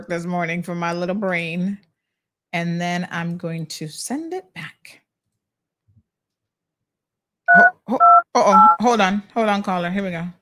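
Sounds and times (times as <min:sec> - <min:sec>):
speech: 0:00.0 - 0:01.9, 0:02.5 - 0:05.0, 0:07.9 - 0:10.4
telephone keypad dialing tones: 0:07.5 - 0:08.8.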